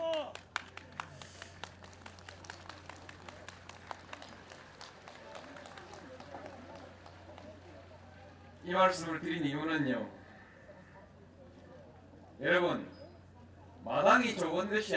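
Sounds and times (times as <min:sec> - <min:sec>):
crowd applause: 0:00.0 - 0:08.6
faint steady hum: 0:00.0 - 0:14.9
low murmur of voices: 0:00.0 - 0:14.9
speech: 0:08.7 - 0:10.2, 0:12.4 - 0:12.9, 0:14.6 - 0:14.9.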